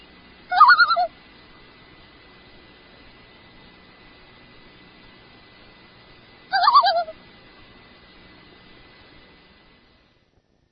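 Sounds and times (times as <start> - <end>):
loon tremolo calls: 0.0 - 7.3.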